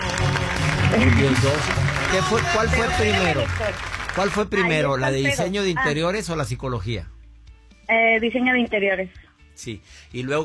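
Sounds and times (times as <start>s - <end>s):
studio audience applause: 0.0s - 5.2s
speech: 0.9s - 7.1s, 7.9s - 10.4s.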